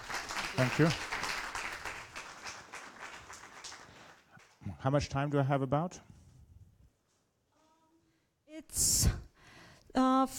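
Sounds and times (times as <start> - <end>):
audience applause: 0.0 - 4.4
speech: 0.6 - 1.1, 4.8 - 6.1.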